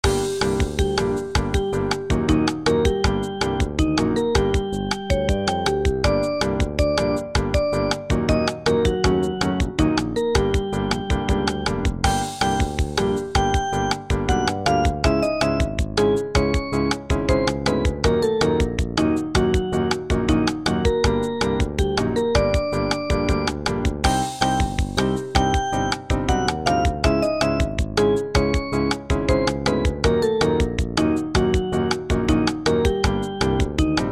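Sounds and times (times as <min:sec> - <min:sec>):
elevator music: 0:00.0 - 0:34.1.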